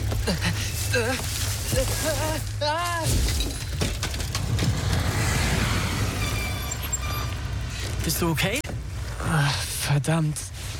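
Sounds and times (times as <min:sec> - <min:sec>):
rattling and clattering: 0:00.0 - 0:08.9
car engine rumble: 0:00.0 - 0:10.7
speech: 0:00.3 - 0:03.3, 0:08.2 - 0:08.6, 0:10.0 - 0:10.5
glass shattering: 0:03.0 - 0:04.4.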